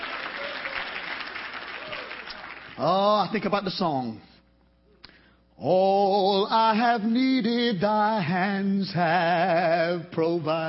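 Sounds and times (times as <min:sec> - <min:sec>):
crowd hand clapping: 0:00.0 - 0:02.9
speech: 0:02.8 - 0:04.3, 0:05.6 - 0:10.6.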